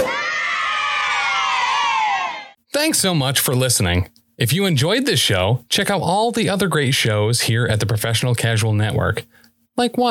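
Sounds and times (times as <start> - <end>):
kids cheering sound effect: 0.0 - 2.6
speech: 2.8 - 10.0.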